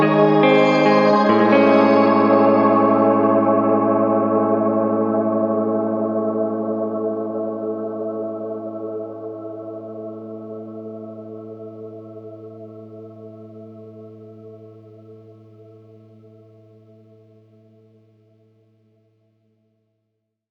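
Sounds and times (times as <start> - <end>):
shimmer reverb effect: 0.0 - 7.6.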